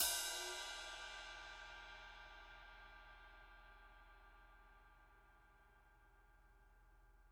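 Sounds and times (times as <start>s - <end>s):
Z Custom Projection 19-inch crash cymbal struck with tip: 0.0s - 5.1s.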